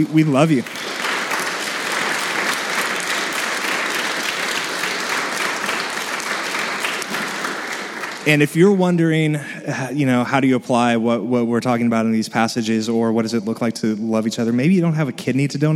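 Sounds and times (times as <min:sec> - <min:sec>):
speech: 0:00.0 - 0:00.8, 0:08.2 - 0:15.7
audience applause: 0:00.0 - 0:08.6.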